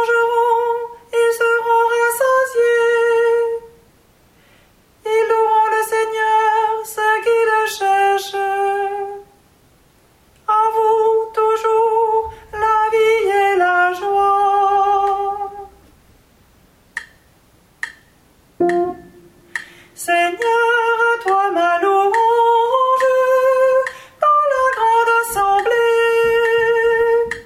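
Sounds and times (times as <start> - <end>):
soprano part singing a psalm in French: 0.0 - 3.8, 5.0 - 9.4, 10.4 - 15.8, 19.1 - 27.4.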